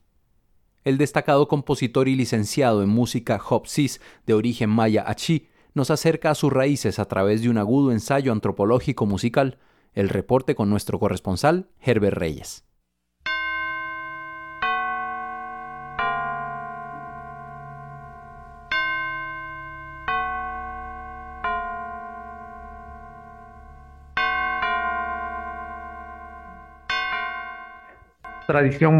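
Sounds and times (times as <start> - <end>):
speech: 0.8 - 12.7, 28.5 - 28.9
church bells tolling and pealing for All Saints' Day: 13.3 - 28.9.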